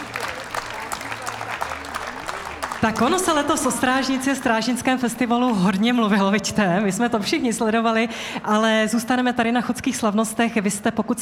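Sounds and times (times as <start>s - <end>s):
audience applause at the Chodské slavnosti folk festival in Domažlice: 0.0s - 5.8s
speech: 2.8s - 11.2s.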